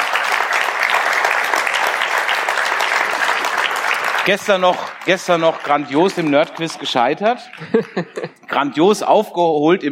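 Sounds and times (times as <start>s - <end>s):
audience applause: 0.0s - 8.2s
speech: 4.2s - 9.8s
laughter: 7.3s - 8.7s.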